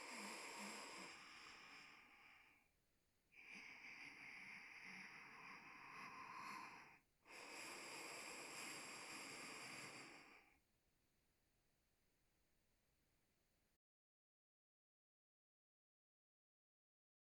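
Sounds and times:
person sleeping breathing through nose: 0.0 - 2.7, 3.4 - 10.6.

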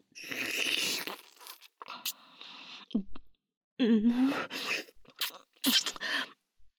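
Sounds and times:
ASMR ear licking sounds: 0.3 - 2.2, 4.8 - 6.0.

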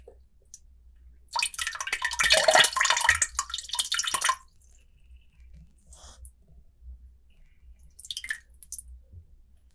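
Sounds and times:
person urinating: 1.4 - 4.5, 7.9 - 8.7.

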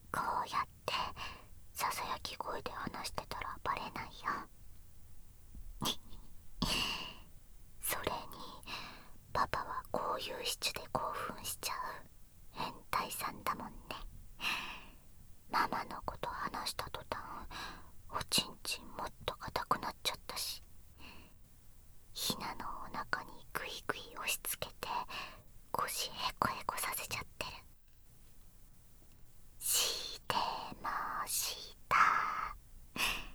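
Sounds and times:
person whispering: 0.1 - 4.5, 5.8 - 6.8, 7.8 - 8.8, 9.4 - 14.1, 15.5 - 17.5, 18.1 - 20.6, 22.2 - 27.7, 29.6 - 33.1.

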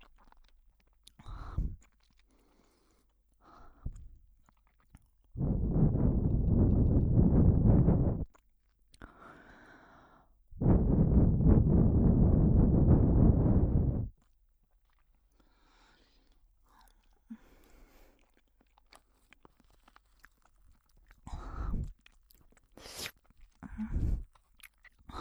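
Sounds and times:
erotic breathing by the ear: 5.4 - 8.2, 10.6 - 14.1.

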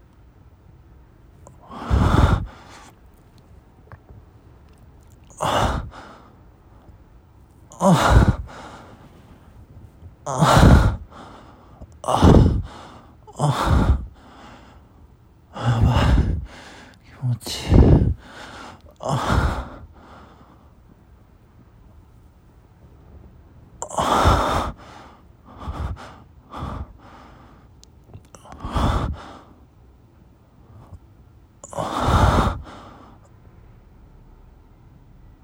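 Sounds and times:
person breathing and moaning while masturbating: 1.5 - 2.9, 5.2 - 6.3, 7.7 - 9.2, 10.3 - 14.5, 15.6 - 20.2, 25.5 - 27.1, 28.3 - 29.4, 31.7 - 33.2.

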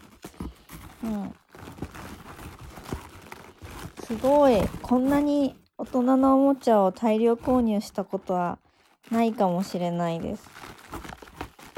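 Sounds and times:
scissors cutting packaging: 0.0 - 6.1, 9.1 - 11.7
rustling and crinkling of plastic and cardboard: 0.0 - 11.7
speech: 1.0 - 1.4, 4.1 - 10.6.

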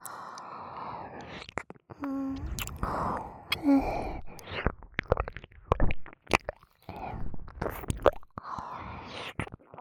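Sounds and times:
ASMR ear licking sounds: 1.2 - 3.7, 4.2 - 8.5.

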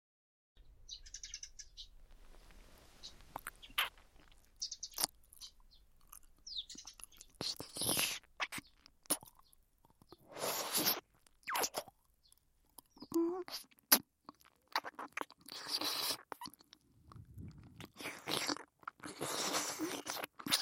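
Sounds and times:
slow wet ear licking: 2.4 - 5.5, 6.9 - 9.4, 10.1 - 12.0, 13.1 - 20.5.

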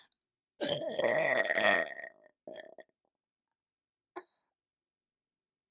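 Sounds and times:
loud burp: 0.6 - 2.9.

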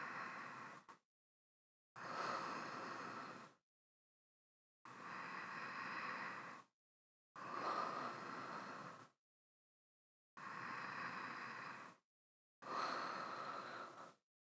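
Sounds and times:
person breathing in sleep: 0.0 - 1.0, 2.0 - 3.6, 4.9 - 6.7, 7.4 - 9.2, 10.4 - 12.0, 12.6 - 14.2.

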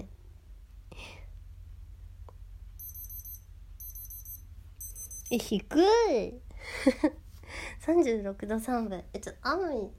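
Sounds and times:
digital thermometer beeping: 2.8 - 5.4
speech: 5.3 - 9.9.

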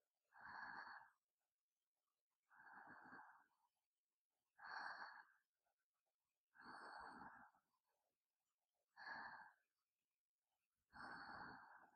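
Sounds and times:
sleep breathing ASMR: 0.3 - 1.2, 2.5 - 3.5, 4.6 - 5.4, 6.5 - 7.6, 8.9 - 9.6, 10.9 - 11.9.

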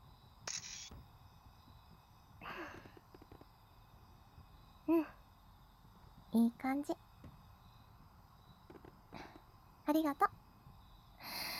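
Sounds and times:
camera shutter clicking as a photo is taken: 0.5 - 0.9
speech: 6.4 - 7.0, 10.0 - 10.4.

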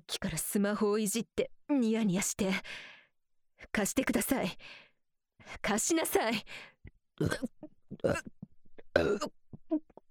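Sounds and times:
speech: 0.1 - 2.9, 3.6 - 4.8, 5.5 - 8.4, 9.0 - 9.8
person burping: 7.2 - 9.9.

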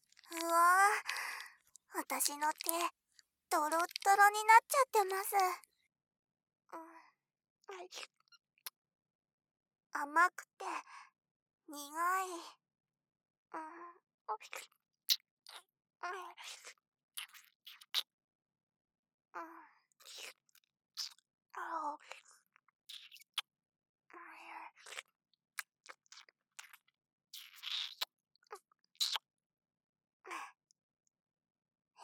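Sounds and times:
chewing and crunching Japanese dagashi candy: 0.0 - 2.9, 3.5 - 5.6, 14.4 - 15.6, 16.4 - 18.1, 20.0 - 21.2, 22.0 - 22.2, 22.9 - 23.5, 24.7 - 29.2
speech: 2.1 - 5.7, 7.7 - 8.2, 10.0 - 11.1, 11.7 - 12.6, 13.5 - 14.8, 16.0 - 16.8, 19.4 - 20.4, 21.6 - 22.2.

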